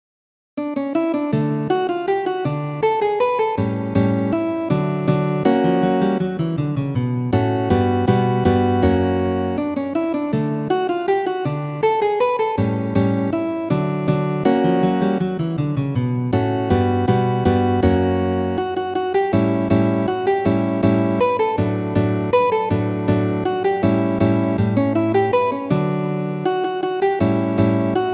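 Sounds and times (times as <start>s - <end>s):
guitar waltzes: 0.6s - 28.1s.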